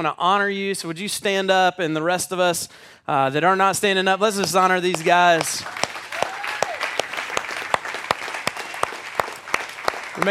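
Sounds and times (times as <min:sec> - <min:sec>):
speech: 0:00.0 - 0:05.8
audience applause: 0:04.9 - 0:10.2.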